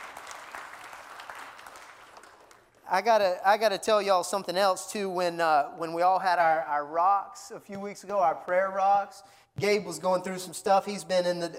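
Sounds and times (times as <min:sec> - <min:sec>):
church congregation applauding to welcome a young reader: 0:00.0 - 0:02.9
speech: 0:02.9 - 0:11.5.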